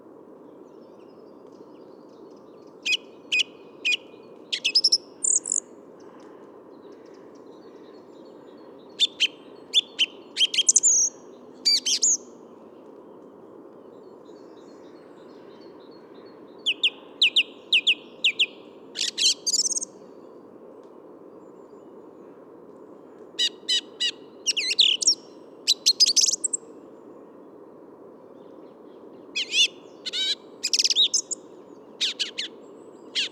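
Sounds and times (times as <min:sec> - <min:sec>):
song thrush singing: 0:00.6 - 0:05.7, 0:06.8 - 0:12.4, 0:13.8 - 0:20.2, 0:23.4 - 0:26.7, 0:28.4 - 0:33.3.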